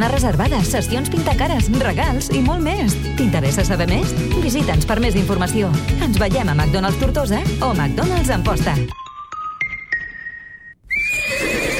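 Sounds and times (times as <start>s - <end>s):
speech: 0.0s - 9.0s
horse whinnying at a riding camp: 10.8s - 11.7s.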